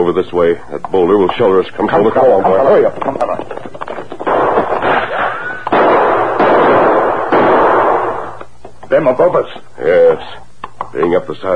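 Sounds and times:
speech: 0.0 - 3.6, 9.0 - 11.5
gunshots in a canyon: 4.2 - 8.4.

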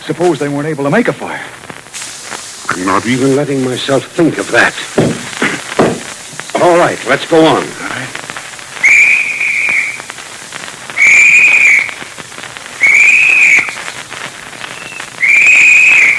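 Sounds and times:
speech: 0.0 - 1.6, 2.8 - 5.1, 6.7 - 8.1
search party whistle blasts signalling: 8.8 - 10.1, 10.9 - 12.1, 12.8 - 16.1.

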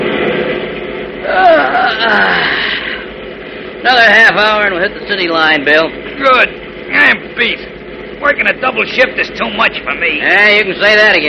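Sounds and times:
truck driver yawning: 1.2 - 3.1
speech: 3.8 - 11.2.

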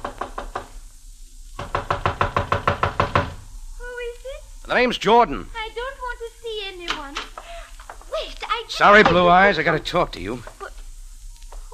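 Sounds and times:
knocking on a houseboat door: 0.0 - 0.7, 1.6 - 3.4, 8.9 - 9.4
speech: 4.7 - 5.6, 8.8 - 10.5.

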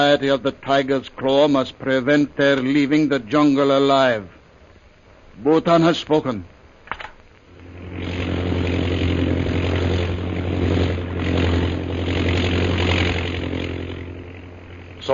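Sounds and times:
speech: 0.0 - 4.4, 5.4 - 6.5
chartered propeller plane engine droning: 6.8 - 15.1.

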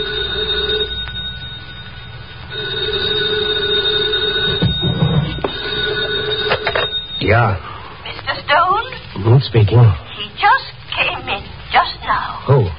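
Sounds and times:
old-style telephone bell ringing: 0.0 - 7.6
speech: 7.2 - 7.7, 9.2 - 12.7.

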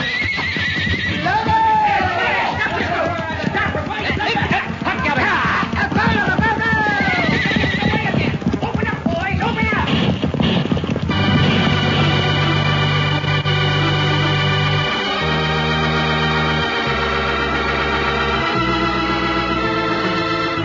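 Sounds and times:
horse neighing: 0.0 - 8.8
hooves clip-clopping: 0.0 - 20.6
voices: 1.2 - 10.0.

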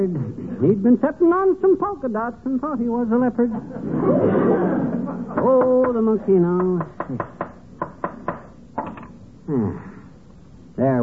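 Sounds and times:
speech: 0.0 - 7.4, 9.5 - 9.9, 10.8 - 11.0
laughter: 3.4 - 6.6
hammering a nail into wooden frame: 6.6 - 8.6.

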